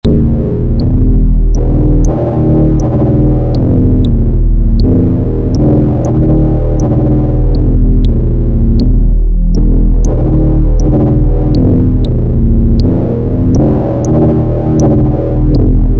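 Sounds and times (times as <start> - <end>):
synthesizer foldspace sound: 0.0 - 15.9.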